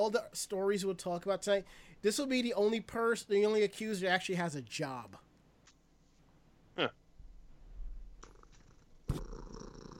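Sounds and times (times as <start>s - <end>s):
speech: 0.0s - 5.3s, 6.8s - 7.0s
cat purring: 8.2s - 9.9s.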